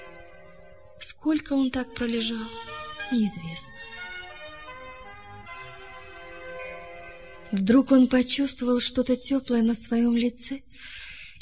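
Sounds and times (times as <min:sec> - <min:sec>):
distant church bell ringing: 0:00.0 - 0:09.0
speech: 0:01.0 - 0:04.0, 0:07.5 - 0:11.0.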